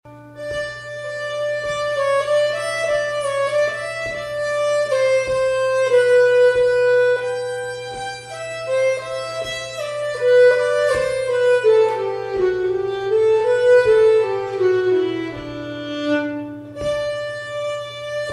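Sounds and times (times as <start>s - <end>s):
slow polska folk tune: 0.1s - 18.3s.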